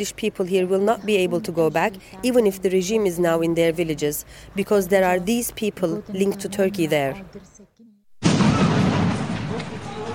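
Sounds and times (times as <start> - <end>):
speech: 0.0 - 7.7
artillery shell fired at Russian security forces patrolling a border: 8.2 - 10.1.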